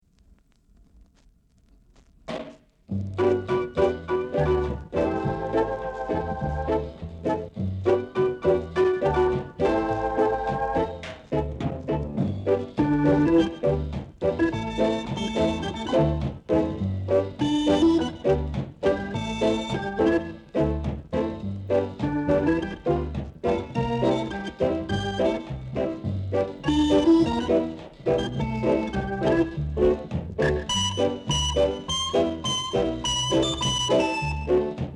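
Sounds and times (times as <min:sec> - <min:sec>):
groove music: 0:01.0 - 0:34.9.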